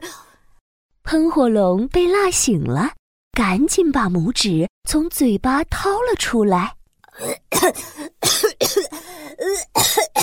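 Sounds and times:
speech: 1.1 - 10.2
person coughing from spicy food: 7.1 - 10.2.

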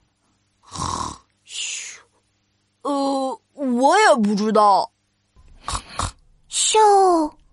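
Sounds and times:
voice imitating snoring snorts: 0.6 - 1.3, 5.5 - 6.2
speech: 3.8 - 4.9, 6.7 - 7.4.

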